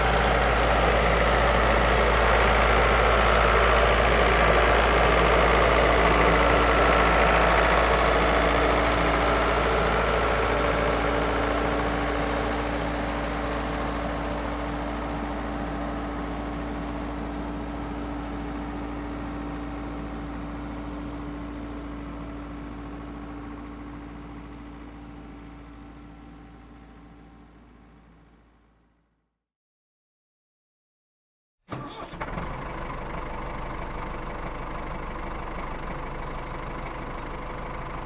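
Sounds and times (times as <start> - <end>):
tractor engine starting: 0.0 - 25.0, 31.7 - 38.0
tractor passing by: 0.0 - 25.7.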